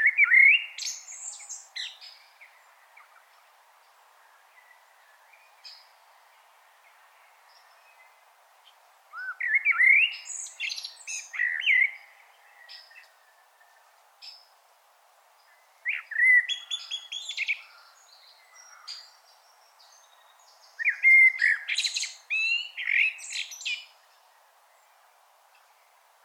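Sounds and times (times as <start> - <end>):
common blackbird Turdus merula warbling with scratchy twitters: 0.0 - 3.2, 9.1 - 14.4, 15.5 - 24.1.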